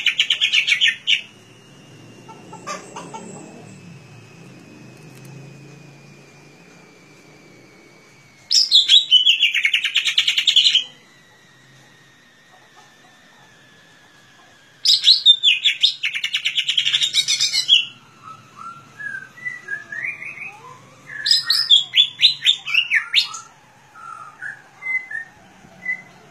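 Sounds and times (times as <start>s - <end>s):
leafbird singing chirping warbled notes: 0.0s - 3.8s, 8.5s - 10.9s, 14.8s - 26.3s.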